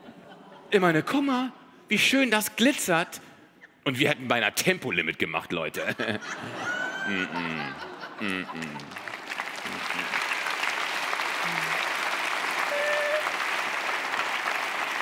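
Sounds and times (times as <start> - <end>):
laughter: 0.0 - 1.1, 5.8 - 10.2
speech: 0.7 - 9.1, 9.7 - 10.2, 11.4 - 11.9
people clapping: 8.1 - 15.0.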